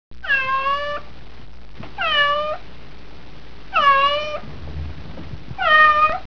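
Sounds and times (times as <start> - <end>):
cat meowing: 0.2 - 1.1, 2.0 - 2.6, 3.7 - 4.4, 5.6 - 6.3.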